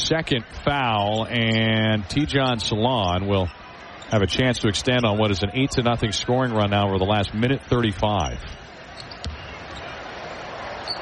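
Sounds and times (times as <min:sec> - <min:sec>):
arena crowd murmur: 0:00.0 - 0:11.0
speech: 0:00.1 - 0:08.6
basketball dribbled before a free throw: 0:09.1 - 0:09.8.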